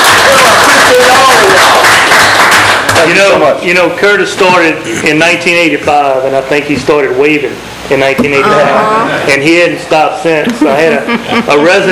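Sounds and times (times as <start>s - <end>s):
audience applause: 0.0s - 3.1s
speech: 3.1s - 11.9s.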